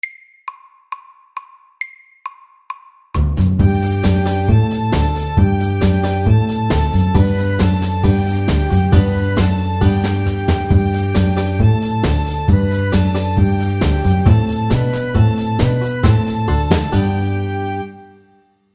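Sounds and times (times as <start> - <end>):
square dance music: 3.2 - 18.0.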